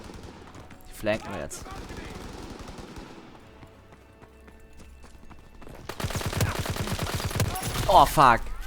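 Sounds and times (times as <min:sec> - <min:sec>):
automatic gunfire in a video game shooter: 0:00.0 - 0:00.6, 0:01.6 - 0:03.4, 0:05.9 - 0:08.1
speech: 0:01.0 - 0:02.0, 0:07.9 - 0:08.5.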